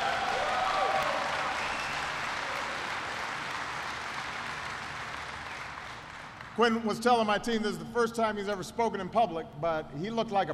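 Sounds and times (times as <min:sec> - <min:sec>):
audience applause: 0:00.0 - 0:06.6
speech: 0:06.6 - 0:10.5.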